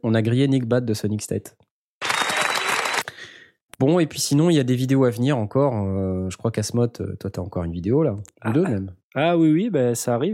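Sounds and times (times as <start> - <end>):
speech: 0.0 - 1.7, 3.8 - 10.3
applause: 2.0 - 3.3.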